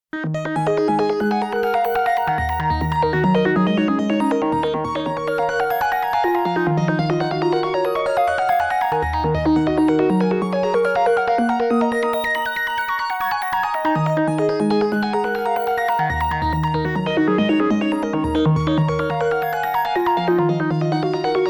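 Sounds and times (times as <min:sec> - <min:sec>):
Sequential Trigon 6 synthesizer arpeggio: 0:00.2 - 0:21.4.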